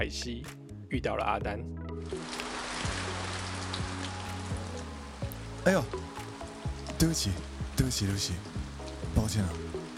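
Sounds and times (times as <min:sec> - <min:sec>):
speech: 0:00.0 - 0:02.4, 0:05.6 - 0:06.2, 0:07.0 - 0:08.6, 0:09.2 - 0:09.9
steady rain falling: 0:02.0 - 0:09.9.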